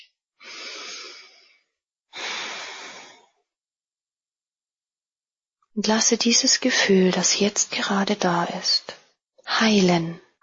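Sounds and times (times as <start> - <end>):
deep breaths during a guided meditation: 0.4 - 3.4
speech: 5.8 - 10.2.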